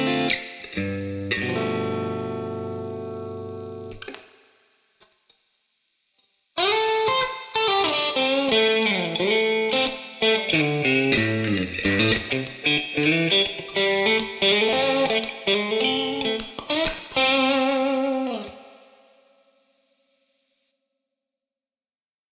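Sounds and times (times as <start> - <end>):
amplified guitar without booster: 0.0 - 4.4, 6.6 - 19.2.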